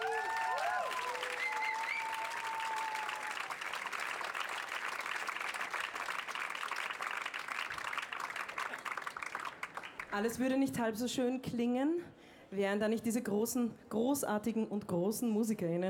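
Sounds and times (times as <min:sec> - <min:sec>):
audience applause: 0:00.0 - 0:10.1
speech: 0:10.2 - 0:15.8.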